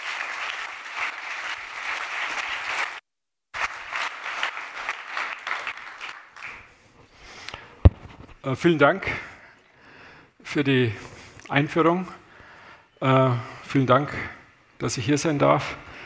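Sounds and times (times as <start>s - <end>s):
audience applauding: 0.0s - 3.0s, 3.6s - 6.7s
speech: 8.4s - 9.3s, 10.5s - 12.2s, 13.0s - 15.8s.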